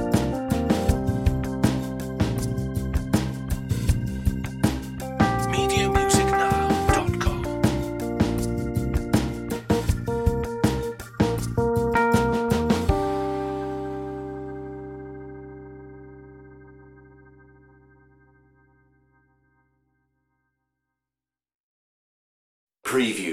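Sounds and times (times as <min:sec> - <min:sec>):
mid-tempo rock blues music: 0:00.0 - 0:14.7.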